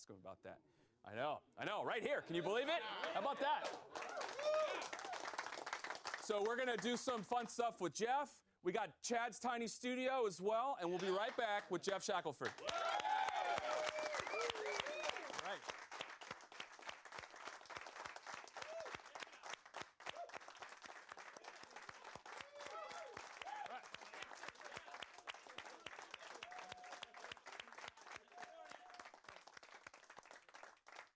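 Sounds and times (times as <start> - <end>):
speech: 0.0 - 5.0, 6.3 - 13.1
crowd audience applause: 2.9 - 7.0, 12.4 - 31.1.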